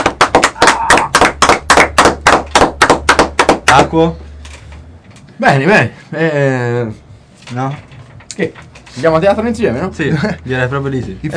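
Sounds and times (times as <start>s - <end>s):
applause: 0.0s - 3.6s
speech: 3.7s - 4.2s, 5.4s - 11.3s.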